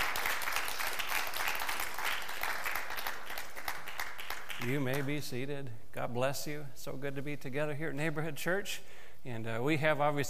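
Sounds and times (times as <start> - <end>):
audience clapping: 0.0 - 5.2
speech: 4.6 - 10.2.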